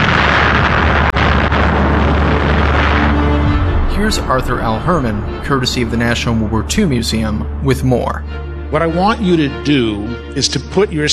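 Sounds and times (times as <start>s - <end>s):
bomb dropped by a dive bomber detonating: 0.0s - 7.8s
speech: 4.1s - 11.1s.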